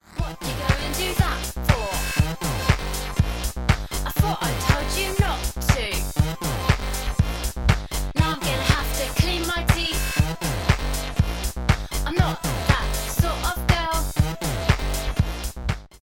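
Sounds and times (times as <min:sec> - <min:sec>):
raw punk disco music: 0:00.0 - 0:16.0.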